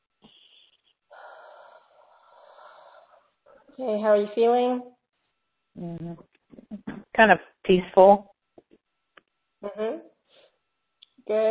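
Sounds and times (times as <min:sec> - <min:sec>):
deep breath: 0:00.2 - 0:03.8
sniff: 0:00.2 - 0:04.4, 0:10.3 - 0:10.6
speech: 0:03.8 - 0:04.9, 0:05.8 - 0:06.3, 0:07.2 - 0:08.3, 0:11.3 - 0:11.5.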